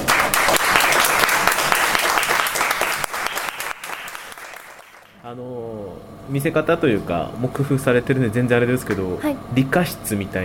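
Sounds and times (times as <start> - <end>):
audience applause: 0.0 - 5.2
speech: 5.3 - 5.7, 6.3 - 10.4.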